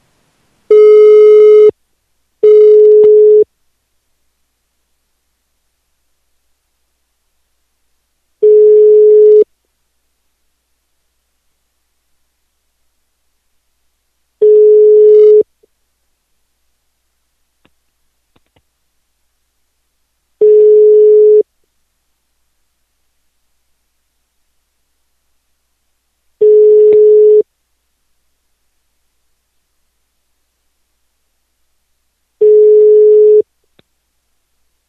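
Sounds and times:
telephone busy signal: 0:00.7 - 0:01.7, 0:02.4 - 0:03.4, 0:08.4 - 0:09.5, 0:14.4 - 0:15.4, 0:20.4 - 0:21.4, 0:26.4 - 0:27.4, 0:32.4 - 0:33.4.

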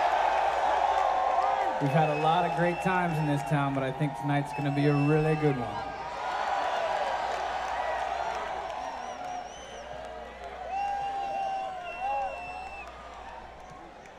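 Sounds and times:
concert crowd applause and cheering: 0:00.0 - 0:14.1
speech: 0:01.8 - 0:05.9.

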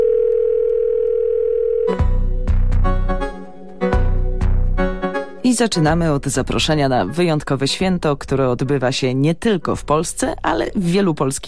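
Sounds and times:
telephone dial tone: 0:00.0 - 0:02.0
loud music with punchy percussive hits: 0:02.0 - 0:05.4
speech: 0:05.5 - 0:11.4.

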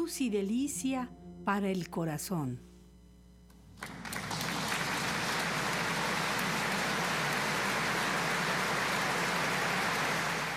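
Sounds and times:
speech: 0:00.1 - 0:02.7
opera audience applauding after a coloratura aria: 0:03.8 - 0:10.5.

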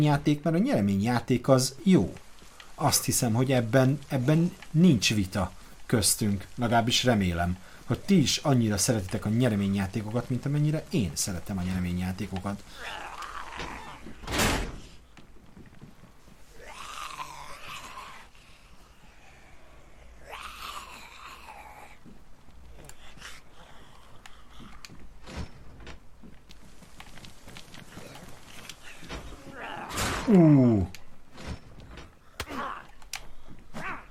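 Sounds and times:
speech: 0:00.0 - 0:02.2, 0:02.8 - 0:13.0
button-operated door mechanism whirring and rattling: 0:13.5 - 0:15.0, 0:24.3 - 0:30.3, 0:31.0 - 0:32.2
button-operated door bang: 0:14.2 - 0:15.0.

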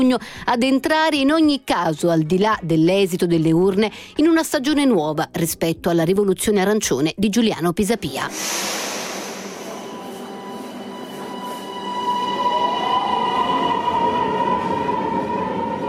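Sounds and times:
speech: 0:00.0 - 0:08.9
Milan metro subway train rumbling: 0:08.3 - 0:15.8.

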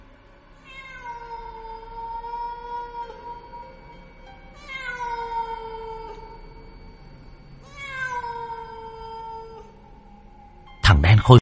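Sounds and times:
cat yowling eerily: 0:00.6 - 0:03.9, 0:04.6 - 0:06.7, 0:07.6 - 0:09.8
speech: 0:10.9 - 0:11.3.

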